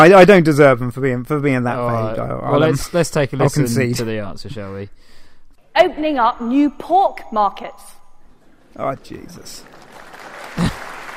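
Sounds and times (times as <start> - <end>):
speech: 0.0 - 5.1, 5.8 - 8.0, 8.7 - 9.8
applause in a played recording: 8.9 - 11.1.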